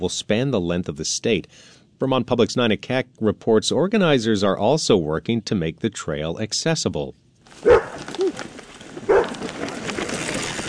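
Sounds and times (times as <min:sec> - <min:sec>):
speech: 0:00.0 - 0:07.8
outdoor noise: 0:00.0 - 0:10.6
service dog barking: 0:07.6 - 0:08.0, 0:09.1 - 0:09.4.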